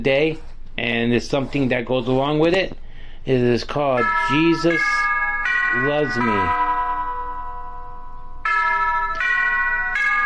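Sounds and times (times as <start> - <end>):
speech: 0.0 - 5.1, 5.7 - 6.6
wall clock chiming: 3.9 - 10.2.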